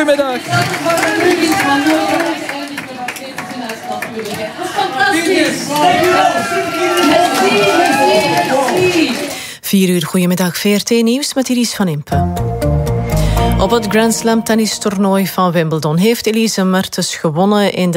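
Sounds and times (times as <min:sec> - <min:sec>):
speech: 0:00.0 - 0:02.2, 0:04.2 - 0:12.4, 0:13.6 - 0:17.9
audience applause: 0:00.0 - 0:09.4.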